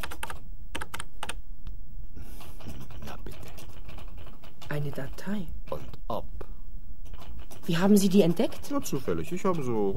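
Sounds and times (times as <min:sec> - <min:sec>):
keys pressed on a computer keyboard to enter a number code: 0:00.0 - 0:01.4, 0:03.2 - 0:04.8
speech: 0:04.8 - 0:06.3, 0:07.7 - 0:09.9.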